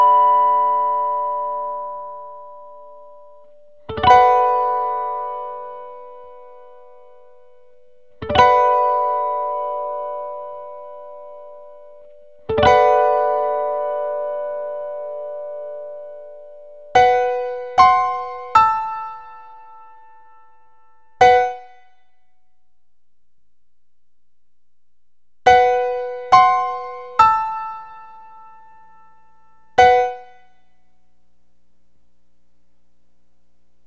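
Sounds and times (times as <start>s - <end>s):
piano: 0.0s - 21.9s, 25.5s - 30.6s.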